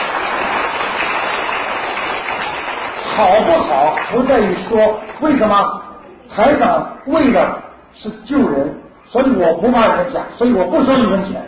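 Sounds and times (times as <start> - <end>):
crowd clapping: 0.0 - 5.2
speech: 3.2 - 11.4.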